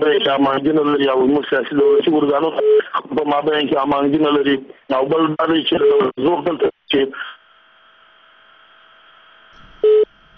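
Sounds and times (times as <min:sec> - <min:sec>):
speech: 0:00.0 - 0:07.4
faint line hum: 0:07.4 - 0:10.3
telephone busy tone after a radio listener's call dropped: 0:09.6 - 0:10.3.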